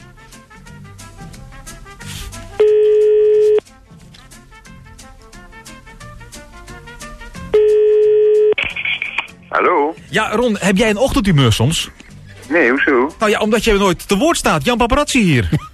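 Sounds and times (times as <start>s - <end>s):
music: 0.0s - 15.7s
telephone redial tones: 2.6s - 3.6s, 7.5s - 8.6s
speech: 9.6s - 15.7s.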